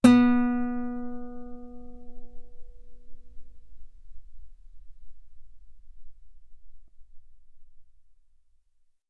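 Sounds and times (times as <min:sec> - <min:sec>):
loud guitar note on the B string: 0:00.0 - 0:05.0.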